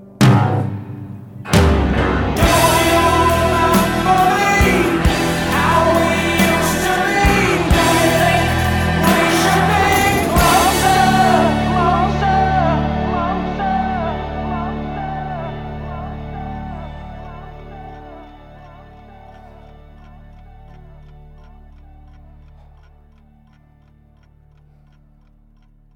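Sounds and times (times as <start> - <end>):
instrumental backing track for a solo: 0.0 - 16.5.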